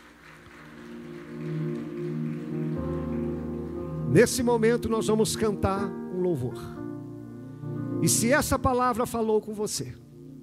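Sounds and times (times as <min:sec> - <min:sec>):
audience applause: 0:00.0 - 0:04.2
sustained keyboard chords: 0:00.0 - 0:10.4
speech: 0:04.1 - 0:06.8, 0:08.0 - 0:10.0.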